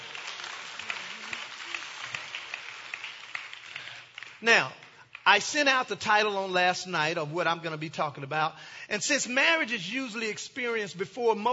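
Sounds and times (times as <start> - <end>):
crowd clapping: 0.0 - 6.2
speech: 4.4 - 11.5.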